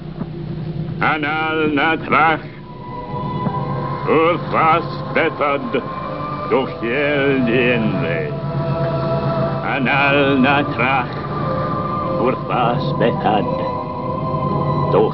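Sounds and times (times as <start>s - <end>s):
chanting: 1.0s - 15.1s.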